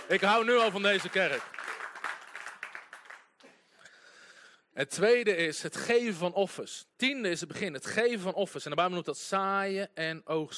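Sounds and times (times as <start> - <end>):
audience applause: 0.0 - 3.4
speech: 0.1 - 1.6, 4.8 - 10.5.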